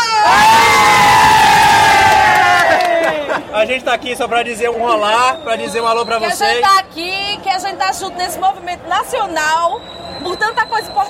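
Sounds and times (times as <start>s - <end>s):
large crowd of demonstrators cheering and shouting at a national protest: 0.0s - 3.4s
speech: 3.6s - 11.0s.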